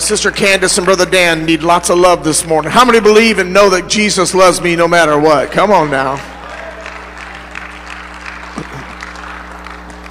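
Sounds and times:
audience clapping: 0.0 - 2.2, 5.2 - 10.0
speech: 0.1 - 6.4.

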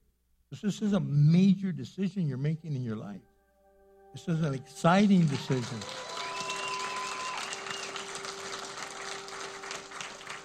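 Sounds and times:
speech: 0.5 - 3.3, 4.1 - 6.1
audience applauding and cheering: 5.0 - 10.4.

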